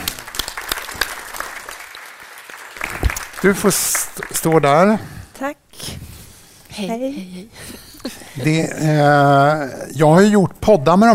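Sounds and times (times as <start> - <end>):
applause: 0.0 - 5.0
speech: 3.4 - 5.9, 6.8 - 7.8, 8.4 - 11.1.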